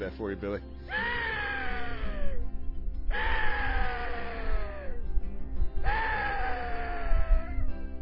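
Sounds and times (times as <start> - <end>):
axis deer calls: 0.9 - 2.4, 3.1 - 5.1, 5.8 - 7.6
low rumble: 0.9 - 8.0.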